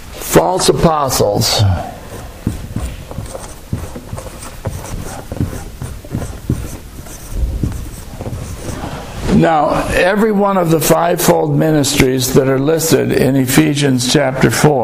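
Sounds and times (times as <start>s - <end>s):
speech: 0.4s - 2.0s, 9.4s - 14.8s
writing on a board: 1.8s - 9.3s.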